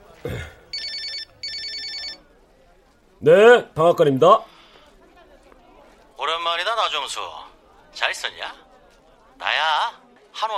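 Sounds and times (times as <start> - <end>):
telephone ringing: 0.7 - 2.3
speech: 3.2 - 4.5, 6.9 - 8.6, 9.4 - 10.5.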